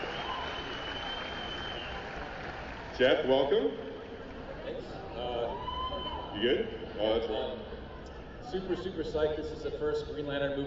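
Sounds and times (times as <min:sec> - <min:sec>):
audience applause at a Green Lantern movie panel: 0:00.0 - 0:03.2
speech: 0:03.0 - 0:04.0, 0:04.7 - 0:07.8, 0:08.4 - 0:10.6.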